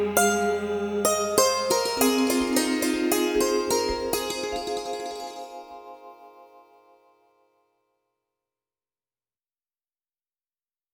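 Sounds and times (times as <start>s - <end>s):
raga melody: 0.2s - 6.9s.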